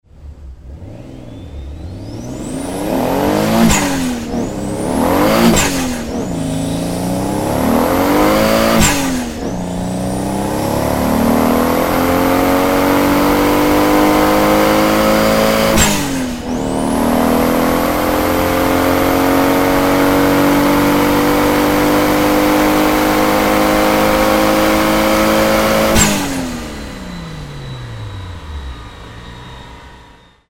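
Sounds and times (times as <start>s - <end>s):
Toyota Supra engine free revving: 0.0s - 30.4s.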